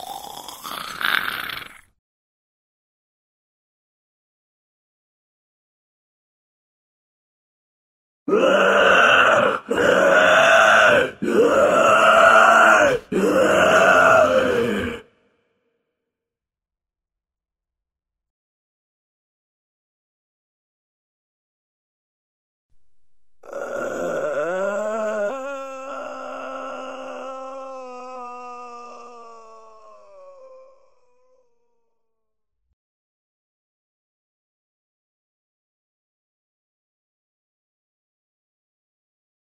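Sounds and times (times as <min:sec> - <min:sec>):
zombie moan: 0:08.3 - 0:15.1, 0:23.4 - 0:31.7.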